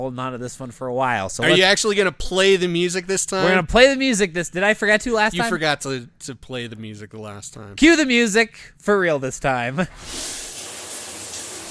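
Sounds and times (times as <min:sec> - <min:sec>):
speech: 0:00.0 - 0:10.4
steam hissing: 0:10.0 - 0:11.6.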